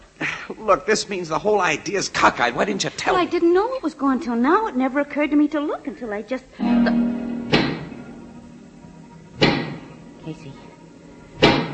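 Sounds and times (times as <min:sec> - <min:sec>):
speech: 0:00.5 - 0:07.1
giant pick knocking: 0:06.8 - 0:08.1, 0:09.4 - 0:09.9.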